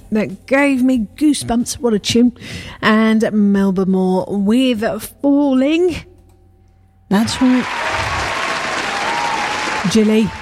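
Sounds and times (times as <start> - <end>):
speech: 0.1 - 6.1, 7.1 - 7.8, 9.8 - 10.4
round of applause: 7.2 - 10.4.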